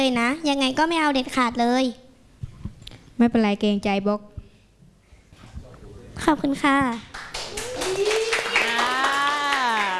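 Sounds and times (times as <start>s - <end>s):
speech: 0.0s - 2.0s, 3.2s - 4.3s, 6.2s - 7.1s
audience clapping: 6.9s - 9.9s.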